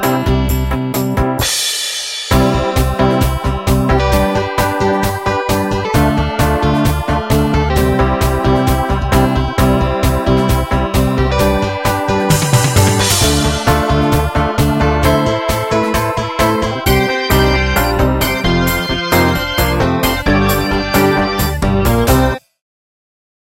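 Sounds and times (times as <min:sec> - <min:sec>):
real drum set playing: 0:00.0 - 0:22.4.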